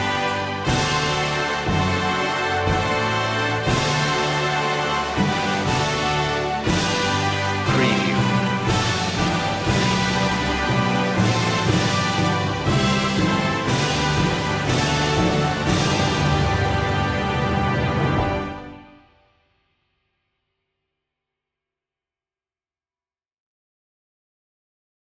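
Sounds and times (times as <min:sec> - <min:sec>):
slow national anthem without choir: 0:00.0 - 0:19.0.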